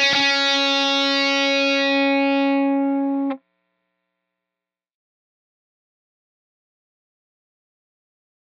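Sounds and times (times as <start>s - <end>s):
guitar playing: 0.0s - 3.4s.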